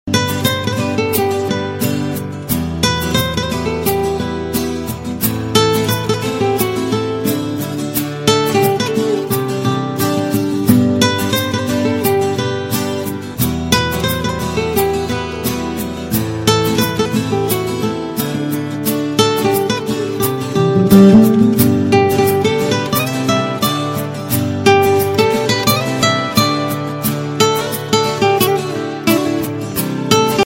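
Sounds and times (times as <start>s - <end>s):
guitar: 0.0s - 30.4s.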